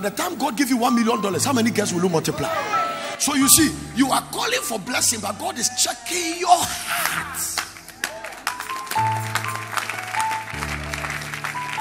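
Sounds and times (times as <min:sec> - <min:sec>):
speech: 0:00.0 - 0:07.6
audience clapping: 0:06.6 - 0:11.7.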